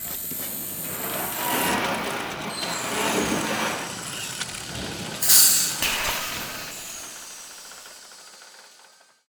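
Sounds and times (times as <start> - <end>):
car being compacted: 0.0 - 9.2.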